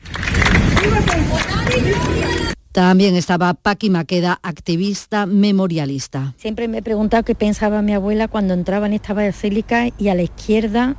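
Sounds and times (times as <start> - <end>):
cheers and applause from a family group: 0.0 - 2.6
speech: 2.8 - 10.9.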